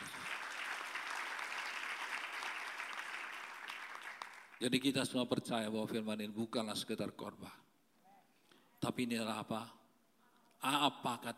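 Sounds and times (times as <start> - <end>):
audience applause: 0.0 - 4.6
speech: 4.6 - 7.6, 8.8 - 9.8, 10.6 - 11.3.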